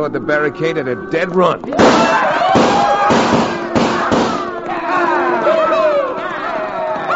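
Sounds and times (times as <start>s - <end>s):
speech: 0.0s - 3.5s
men whooping and yelling: 1.7s - 3.2s, 4.0s - 7.1s
volley of gunshots from several guns: 1.8s - 4.6s.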